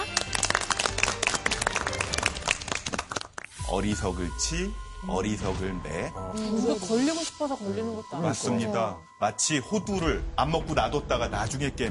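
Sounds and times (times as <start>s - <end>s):
studio audience applause: 0.0s - 3.6s
speech: 3.7s - 11.8s.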